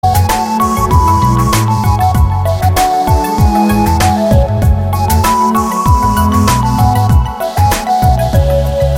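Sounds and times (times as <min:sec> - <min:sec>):
romantic background music: 0:00.0 - 0:08.9.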